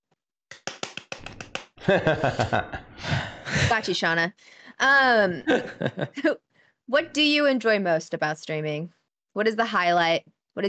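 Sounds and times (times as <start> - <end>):
hand clap: 0.5 - 1.9
speech: 1.8 - 2.9, 3.6 - 10.6
laughter: 1.8 - 3.9, 5.3 - 6.3.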